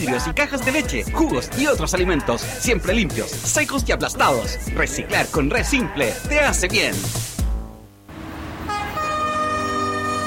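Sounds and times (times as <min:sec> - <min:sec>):
speech: 0:00.0 - 0:07.3
train horn blast: 0:08.2 - 0:10.2.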